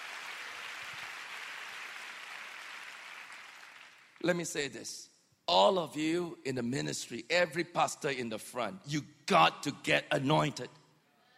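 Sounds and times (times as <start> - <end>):
audience clapping: 0.0 - 4.3
speech: 4.2 - 10.8.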